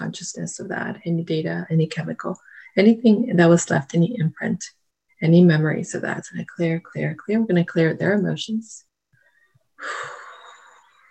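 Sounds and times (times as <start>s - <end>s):
speech: 0.1s - 8.9s, 9.8s - 10.2s
deep breath during a guided energy-clearing session: 9.2s - 10.9s.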